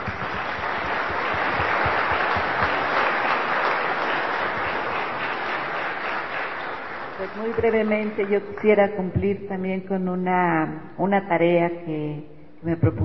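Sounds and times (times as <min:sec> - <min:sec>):
audience applause: 0:00.0 - 0:08.3
speech: 0:07.3 - 0:13.0.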